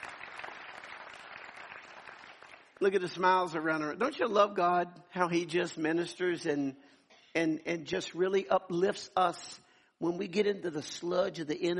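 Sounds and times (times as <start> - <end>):
audience hand clapping: 0.0 - 3.7
speech: 2.8 - 11.7.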